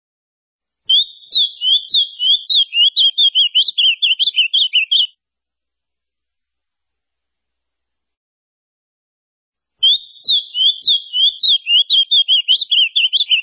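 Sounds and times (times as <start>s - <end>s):
ultramarine grosbeak song: 0.9s - 5.1s, 9.8s - 13.4s.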